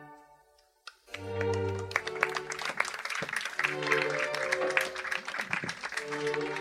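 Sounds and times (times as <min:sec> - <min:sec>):
applause: 0:00.9 - 0:06.5.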